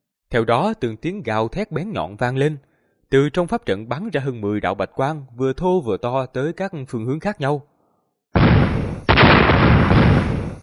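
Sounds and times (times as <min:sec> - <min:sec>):
speech: 0:00.3 - 0:07.7
rapid series of loud explosions: 0:08.4 - 0:10.6.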